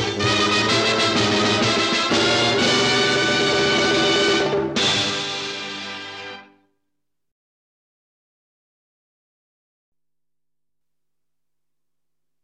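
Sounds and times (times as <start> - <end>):
instrumental theme music: 0.0 - 6.6.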